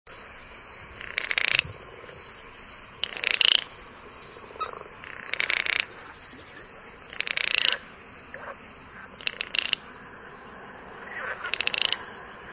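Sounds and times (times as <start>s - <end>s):
frog calls: 0.1s - 12.5s
high insect buzz: 0.1s - 12.5s.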